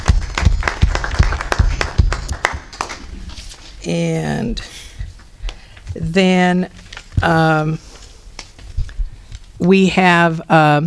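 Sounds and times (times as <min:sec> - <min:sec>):
audience clapping: 0:00.0 - 0:03.5
speech: 0:03.8 - 0:04.9, 0:06.0 - 0:07.9, 0:09.6 - 0:10.8.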